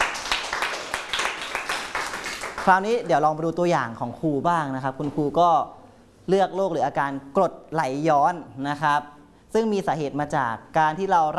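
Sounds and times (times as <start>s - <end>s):
classmates clapping in a classroom for a fellow student: 0.0s - 3.0s
speech: 2.6s - 11.3s.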